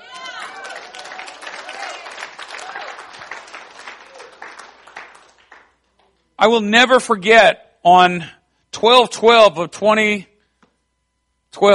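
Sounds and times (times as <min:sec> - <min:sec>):
audience clapping: 0:00.0 - 0:06.2
speech: 0:06.4 - 0:10.3, 0:11.6 - 0:11.7.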